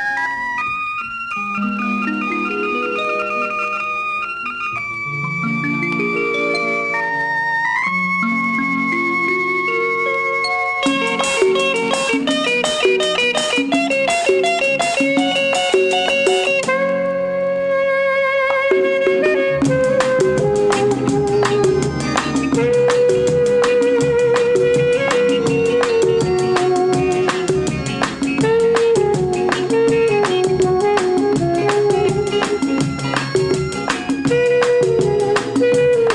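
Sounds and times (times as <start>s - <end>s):
saxophone: 0.2s - 36.1s.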